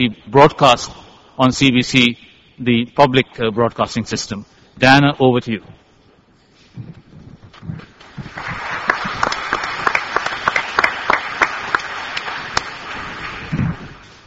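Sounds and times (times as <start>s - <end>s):
speech: 0.0s - 5.8s
audience applause: 8.0s - 14.0s.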